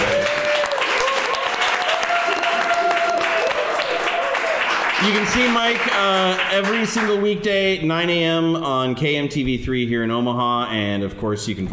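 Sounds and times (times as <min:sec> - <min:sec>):
audience applause: 0:00.0 - 0:07.2
speech: 0:05.0 - 0:11.7.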